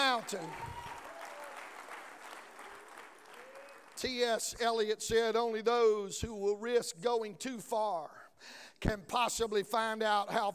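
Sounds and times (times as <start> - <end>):
audience clapping: 0.0 - 4.4
speech: 0.2 - 0.8, 4.0 - 10.5.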